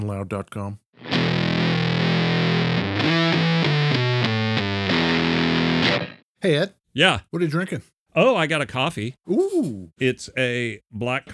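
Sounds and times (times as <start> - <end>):
speech: 0.0 - 1.8, 3.0 - 3.6, 5.8 - 11.3
electric guitar played through a fuzz distortion pedal: 1.0 - 6.2.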